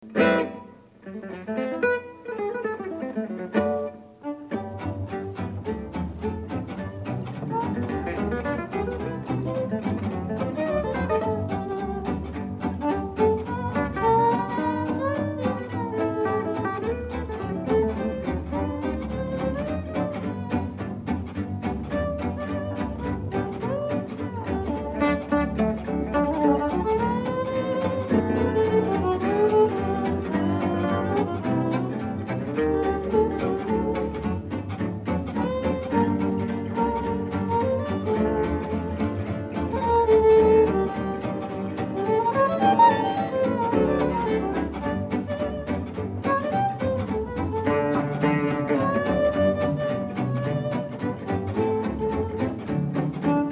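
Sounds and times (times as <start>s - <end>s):
jazz music: 0.0s - 53.4s.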